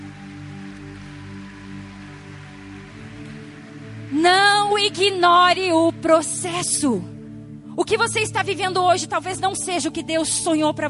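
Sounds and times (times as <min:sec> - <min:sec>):
audience applause: 0:00.0 - 0:05.3
speech: 0:04.1 - 0:07.1, 0:07.8 - 0:10.8.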